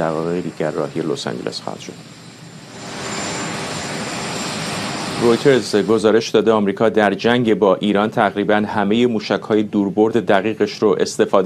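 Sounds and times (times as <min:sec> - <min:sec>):
speech: 0:00.0 - 0:02.2, 0:05.2 - 0:11.4
Marine One presidential helicopter engine roar at Joint Base Andrews: 0:00.0 - 0:06.4.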